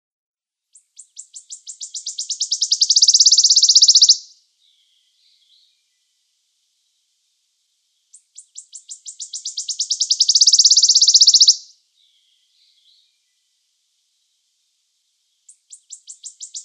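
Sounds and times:
wood warbler singing: 0:00.7 - 0:06.0, 0:08.0 - 0:13.4, 0:15.3 - 0:16.6.

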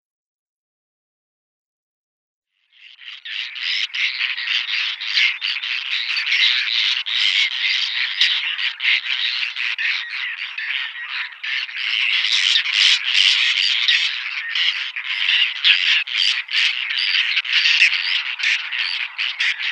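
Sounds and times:
whiskered tern scratchy calls: 0:02.8 - 0:19.7.

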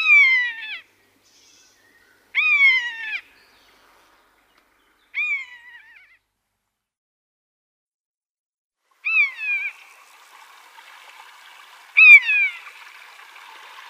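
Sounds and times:
common buzzard mewing calls: 0:00.0 - 0:04.3, 0:05.0 - 0:06.2, 0:09.0 - 0:09.9, 0:11.6 - 0:12.8.

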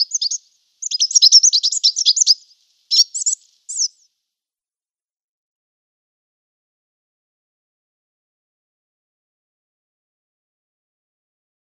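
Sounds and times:
Marsh Tit calls: 0:00.0 - 0:04.1.

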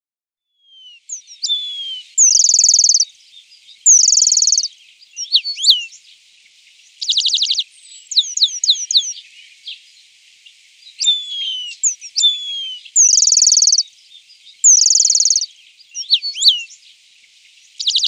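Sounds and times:
Eurasian penduline tit singing high downslurred notes and rattling trills: 0:00.6 - 0:18.0.

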